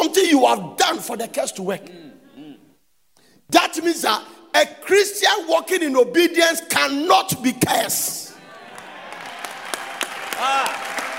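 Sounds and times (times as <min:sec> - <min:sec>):
speech: 0:00.3 - 0:02.2, 0:03.5 - 0:08.3, 0:10.4 - 0:10.8
audience clapping: 0:08.5 - 0:11.1.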